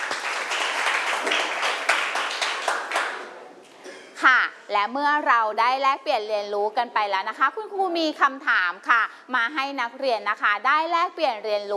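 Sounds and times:
students clapping hands: 0.0 - 3.4
speech: 4.2 - 11.7.

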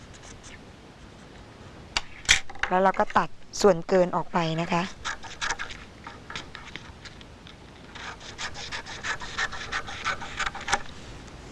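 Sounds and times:
pen drawing a continuous line on paper: 0.0 - 0.6, 4.6 - 6.8, 8.0 - 10.8
speech: 2.7 - 5.0.

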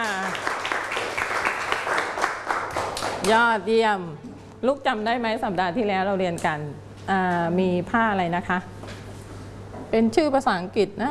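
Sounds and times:
hand clapping: 0.0 - 3.4
speech: 3.2 - 8.8, 9.9 - 11.0.

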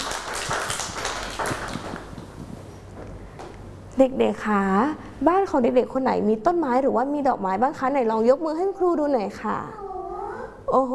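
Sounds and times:
children clapping: 0.0 - 2.4
speech: 4.0 - 9.8, 10.7 - 10.9.

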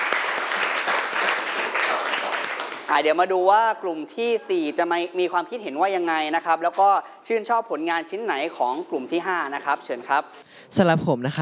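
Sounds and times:
audience applause: 0.0 - 2.9
speech: 2.9 - 11.4.

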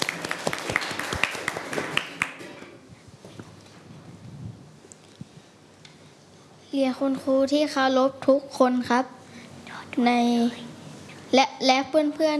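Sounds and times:
applause for a student group: 0.0 - 2.8
speech: 6.8 - 9.2, 10.0 - 10.7, 11.3 - 12.3.

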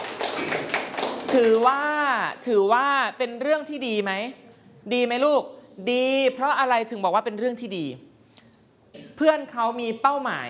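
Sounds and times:
children clapping for a classmate in a lesson: 0.0 - 1.8
speech: 1.3 - 8.1, 9.2 - 10.4.

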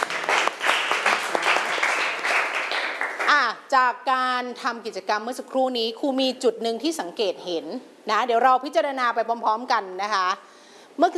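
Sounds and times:
applause: 0.0 - 3.5
speech: 3.4 - 11.1.

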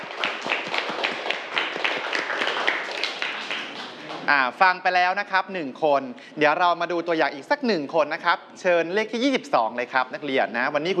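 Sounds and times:
students clapping: 0.0 - 4.5
speech: 4.3 - 10.9.

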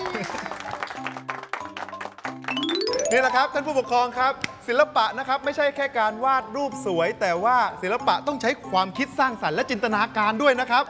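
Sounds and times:
audience applause: 0.0 - 3.1
speech: 3.1 - 10.8.

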